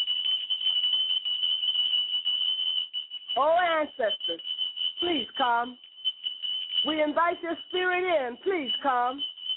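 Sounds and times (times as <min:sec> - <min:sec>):
bell ringing to call ancestors: 0:00.0 - 0:09.5
speech: 0:03.4 - 0:05.9, 0:06.8 - 0:09.3.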